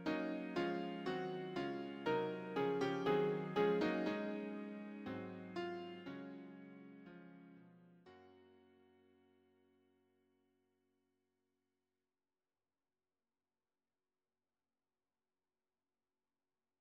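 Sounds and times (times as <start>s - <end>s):
piano: 0.0s - 9.0s.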